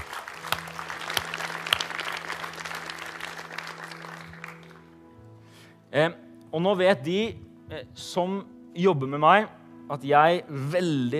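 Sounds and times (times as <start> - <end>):
audience applause for the children's church: 0.0 - 5.0
speech: 6.0 - 11.1.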